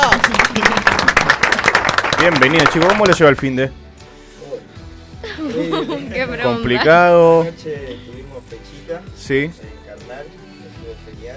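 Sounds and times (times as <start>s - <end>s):
audience applause welcoming guests: 0.0s - 3.4s
speech: 2.2s - 3.8s, 5.6s - 11.3s
laughter: 5.2s - 6.8s.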